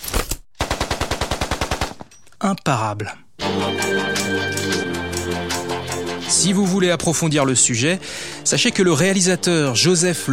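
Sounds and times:
machine gun fire sound effect: 0:00.6 - 0:02.1
speech: 0:02.4 - 0:10.3.

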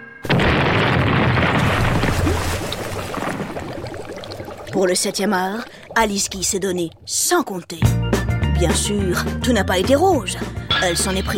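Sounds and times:
boat explosion: 0:00.2 - 0:06.6
speech: 0:04.8 - 0:08.0, 0:08.6 - 0:11.3.

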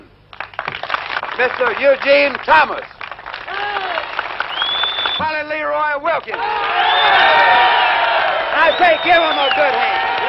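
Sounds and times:
crowd applauding at a Ku Klux Klan meeting: 0:00.3 - 0:05.5, 0:06.2 - 0:10.2
people shouting and whooping at a Ku Klux Klan meeting: 0:03.5 - 0:04.2, 0:06.3 - 0:10.2.

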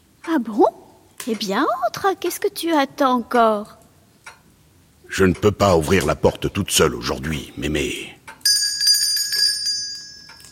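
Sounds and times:
speech: 0:00.3 - 0:03.8, 0:05.1 - 0:08.2
small hand bell ringing: 0:08.4 - 0:10.5.

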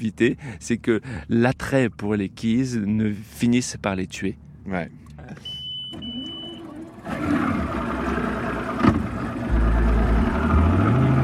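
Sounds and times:
speech: 0:00.0 - 0:05.5
large boat engine rumbling past: 0:04.9 - 0:11.2.

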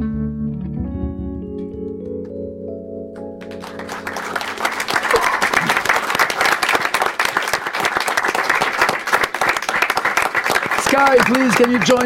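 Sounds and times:
sustained musical chord: 0:00.2 - 0:05.1
audience applause after live song: 0:03.4 - 0:12.0
speech: 0:11.6 - 0:12.0.

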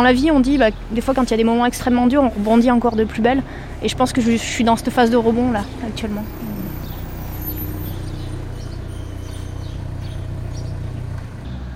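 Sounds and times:
speech: 0:00.0 - 0:06.5
car engine idling as the vehicle reverses: 0:00.0 - 0:11.7
faint bird chirps: 0:06.2 - 0:11.0.

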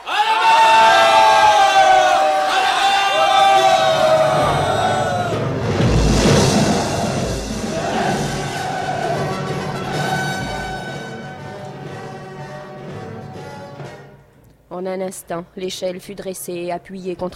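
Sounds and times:
crowd shouting and yelling: 0:00.0 - 0:05.8, 0:06.4 - 0:11.4
speech: 0:14.9 - 0:17.3.

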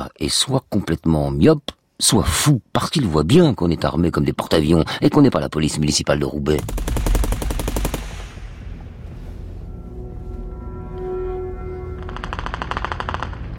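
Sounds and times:
speech: 0:00.1 - 0:07.2
automatic weapon gunfire bursts: 0:06.6 - 0:08.3
faint whining tone: 0:08.6 - 0:12.4.

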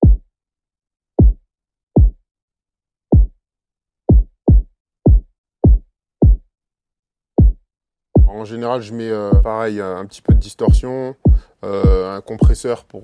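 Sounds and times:
deep punchy kick drum hits with downward pitch drop: 0:00.0 - 0:00.3, 0:01.2 - 0:01.4, 0:02.0 - 0:02.2, 0:03.1 - 0:03.4, 0:04.1 - 0:06.5, 0:07.4 - 0:07.6, 0:08.2 - 0:08.4, 0:09.3 - 0:09.5, 0:10.3 - 0:12.6
speech: 0:08.3 - 0:13.0.

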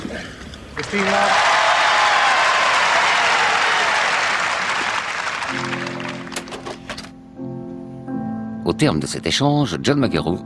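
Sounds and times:
speech: 0:00.1 - 0:01.5, 0:08.8 - 0:10.4
tennis crowd applauding: 0:00.8 - 0:06.6.

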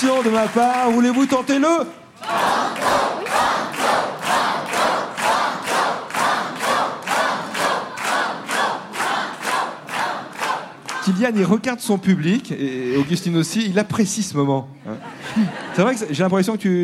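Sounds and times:
studio audience clapping: 0:00.0 - 0:01.6, 0:03.7 - 0:11.1
speech: 0:00.0 - 0:03.7, 0:11.1 - 0:16.8
quiz show studio audience chanting banco: 0:02.2 - 0:11.2
laughter: 0:14.8 - 0:16.2.

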